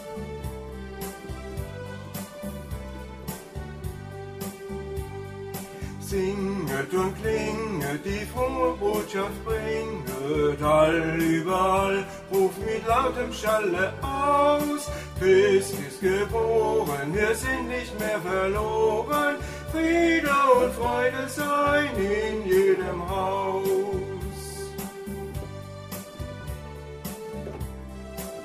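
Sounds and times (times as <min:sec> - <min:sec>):
person singing a Christmas greeting: 0:06.2 - 0:24.7.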